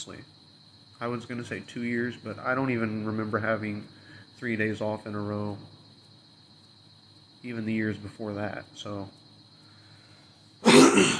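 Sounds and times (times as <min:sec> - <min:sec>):
speech: 0:00.0 - 0:00.4, 0:01.0 - 0:05.8, 0:07.4 - 0:09.2, 0:10.7 - 0:11.1
person clearing throat: 0:10.6 - 0:11.1.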